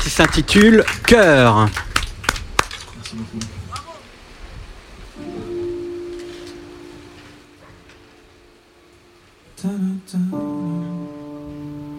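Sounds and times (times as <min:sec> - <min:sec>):
audience clapping: 0:00.0 - 0:04.0
speech: 0:00.1 - 0:01.8, 0:03.1 - 0:03.6, 0:09.6 - 0:10.5.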